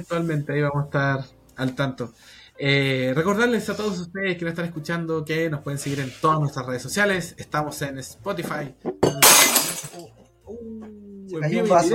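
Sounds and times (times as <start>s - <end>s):
speech: 0.0s - 9.4s, 10.0s - 11.9s
drinking glass shattering: 9.0s - 10.1s.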